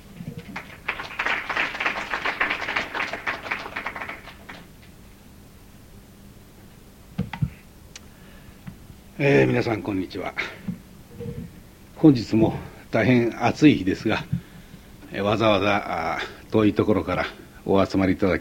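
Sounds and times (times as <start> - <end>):
audience applause welcoming a speaker: 0.3 - 4.8
speech: 9.2 - 10.6, 12.0 - 14.4, 15.1 - 18.3.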